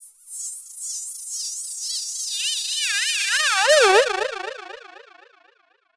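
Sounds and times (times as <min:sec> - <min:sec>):
filtered alarm siren: 0:03.4 - 0:05.3.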